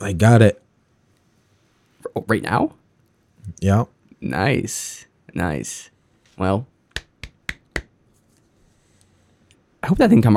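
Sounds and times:
speech: 0.0s - 0.6s, 2.1s - 2.8s, 3.4s - 6.7s, 9.8s - 10.3s
quiet golf clap: 6.9s - 8.0s.

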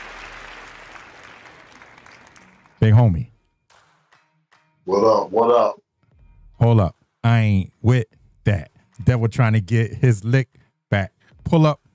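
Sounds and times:
crowd clapping: 0.0s - 3.0s, 3.7s - 4.6s
speech: 2.8s - 3.3s, 4.8s - 5.8s, 6.6s - 11.8s.

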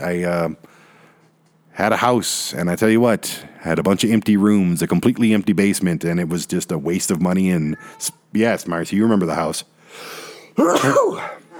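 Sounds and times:
speech: 0.0s - 0.8s, 1.8s - 11.4s
sneeze: 10.6s - 11.5s.

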